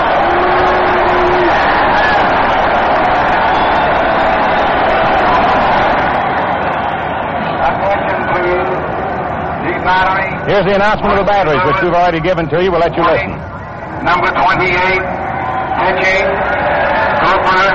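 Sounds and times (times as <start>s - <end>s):
baseball crowd cheering for the Yankees: 0.0s - 17.7s
speech: 10.6s - 13.4s, 14.0s - 15.1s, 15.8s - 16.6s, 17.2s - 17.7s.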